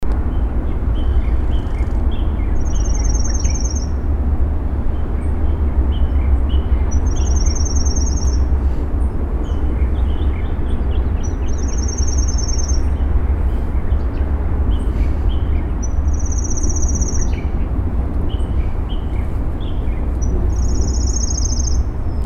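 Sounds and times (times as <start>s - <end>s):
pale-legged leaf warbler Phylloscopus tenellipes: 0.1s - 22.2s.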